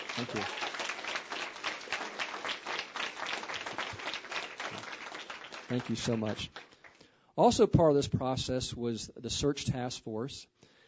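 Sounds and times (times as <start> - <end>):
audience applause: 0.0 - 7.0
speech: 0.2 - 0.6, 5.7 - 6.6, 7.4 - 10.5.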